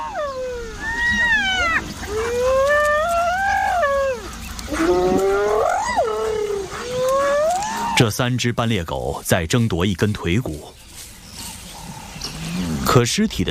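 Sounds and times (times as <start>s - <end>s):
hunting dogs' excited signalling calls: 0.0s - 8.0s
speech: 8.0s - 10.8s, 12.9s - 13.4s.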